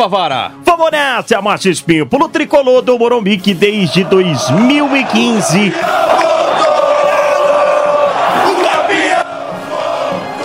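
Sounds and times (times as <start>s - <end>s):
speech: 0.0s - 6.7s
football supporters cheering and chanting: 3.7s - 10.4s.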